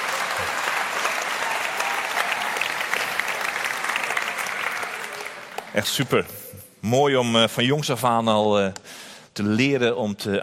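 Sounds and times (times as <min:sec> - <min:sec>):
audience applause: 0:00.0 - 0:06.0
speech: 0:05.8 - 0:10.4.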